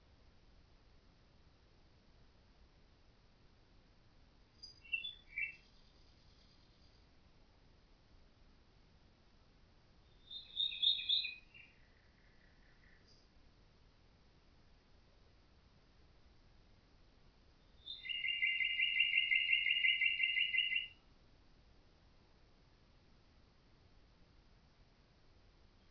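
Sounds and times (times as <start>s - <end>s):
common nightingale singing with whistled notes and fast rattling trill: 4.5s - 7.0s, 10.0s - 13.3s, 17.6s - 21.0s.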